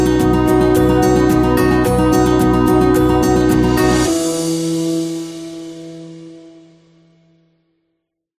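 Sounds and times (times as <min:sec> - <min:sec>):
emotional background wedding music: 0:00.0 - 0:06.6.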